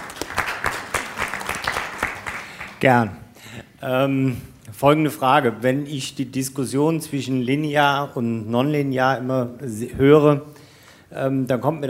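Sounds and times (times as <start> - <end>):
audience applause: 0.0 - 2.8
speech: 2.8 - 3.2, 3.8 - 11.8.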